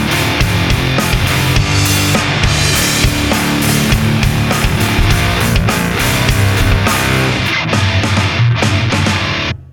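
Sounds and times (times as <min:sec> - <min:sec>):
drums: 0:00.0 - 0:09.7.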